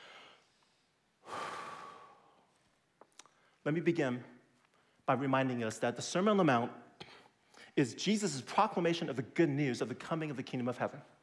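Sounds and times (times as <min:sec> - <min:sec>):
preacher's deep breath during a sermon: 0:00.0 - 0:02.6
speech: 0:03.6 - 0:04.3, 0:05.1 - 0:06.8, 0:07.7 - 0:11.2.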